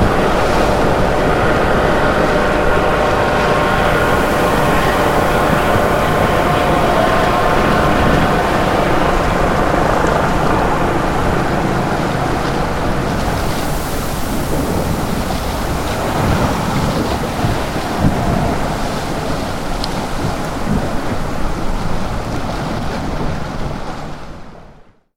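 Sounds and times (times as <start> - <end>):
helicopter in an air sea rescue in a storm: 0.0 - 20.4
storm at sea: 0.0 - 24.8.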